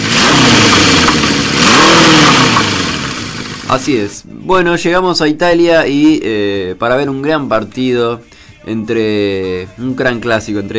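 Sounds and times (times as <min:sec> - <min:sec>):
chainsaw engine revving: 0:00.0 - 0:04.1
speech: 0:03.7 - 0:10.7.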